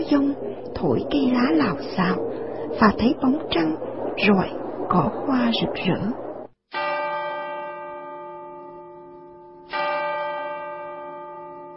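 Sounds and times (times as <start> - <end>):
speech: 0.0 - 6.2
clock striking ten o'clock: 6.7 - 11.7.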